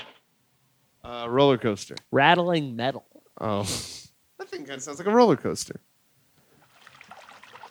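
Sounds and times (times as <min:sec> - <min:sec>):
speech: 0:01.3 - 0:03.9, 0:04.7 - 0:05.9
water splashing and lapping: 0:06.4 - 0:07.7.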